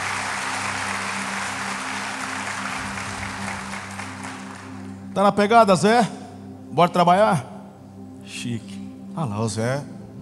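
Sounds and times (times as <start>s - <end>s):
audience applause: 0.0s - 5.0s
low sustained musical hum: 0.0s - 10.2s
speech: 5.2s - 7.5s, 8.3s - 9.9s.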